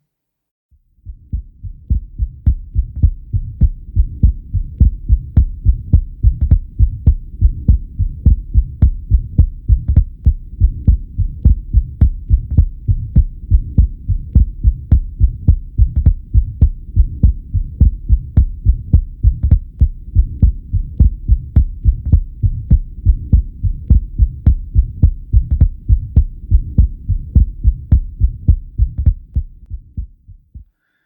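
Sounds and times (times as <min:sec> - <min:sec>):
fast steady heartbeat: 0:01.0 - 0:30.7.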